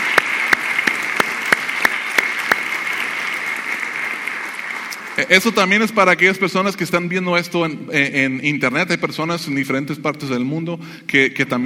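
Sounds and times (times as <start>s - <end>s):
audience applause of welcome: 0.0s - 5.8s
speech: 5.3s - 11.6s.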